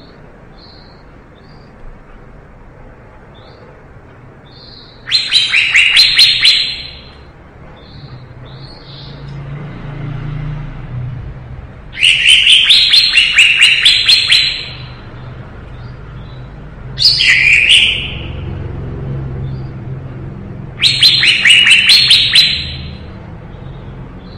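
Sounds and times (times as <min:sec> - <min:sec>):
leafbird song: 0:00.0 - 0:01.9, 0:04.4 - 0:09.4, 0:11.9 - 0:20.2, 0:20.8 - 0:24.3
low background hum: 0:00.0 - 0:24.3.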